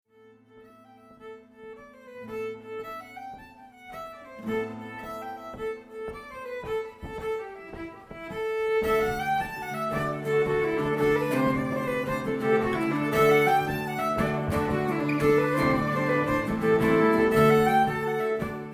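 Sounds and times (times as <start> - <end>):
jig tune: 4.0 - 18.7.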